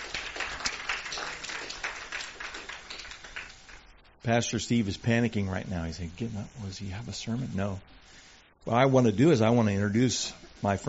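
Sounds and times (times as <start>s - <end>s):
audience applause: 0.0s - 3.9s
speech: 4.2s - 8.0s, 8.7s - 10.8s.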